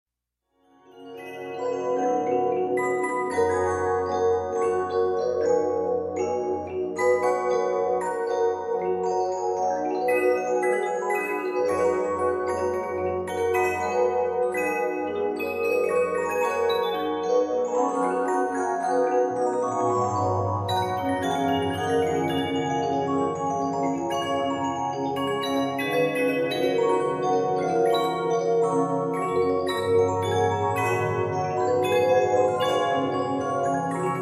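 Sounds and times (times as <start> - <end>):
music box: 0.7 - 34.2.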